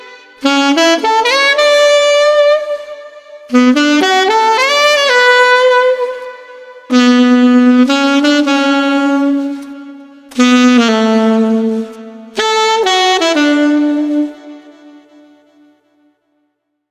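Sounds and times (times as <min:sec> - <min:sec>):
gentle street saxophone playing: 0:00.0 - 0:15.8.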